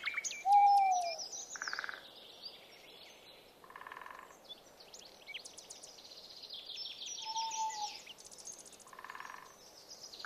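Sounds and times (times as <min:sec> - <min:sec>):
bird singing short rising slurred notes: 0:00.0 - 0:01.9, 0:07.1 - 0:09.0.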